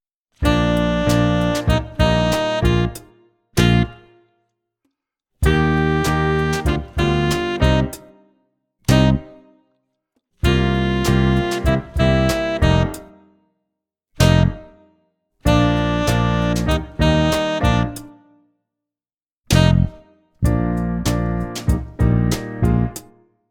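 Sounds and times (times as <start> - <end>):
tenor saxophone jazz club play-along: 0.4 - 4.4, 5.5 - 8.3, 8.9 - 9.6, 10.5 - 13.3, 14.2 - 14.9, 15.5 - 18.4, 19.5 - 23.0.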